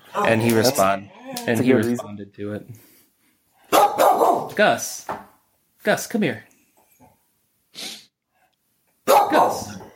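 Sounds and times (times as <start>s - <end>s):
speech: 0.2s - 2.9s, 3.9s - 5.2s, 5.8s - 6.5s, 7.8s - 8.0s
dog barking: 3.7s - 4.6s, 9.0s - 9.9s.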